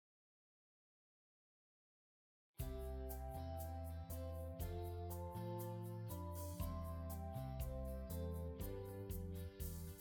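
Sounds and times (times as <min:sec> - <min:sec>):
jingle: 0:02.6 - 0:09.9.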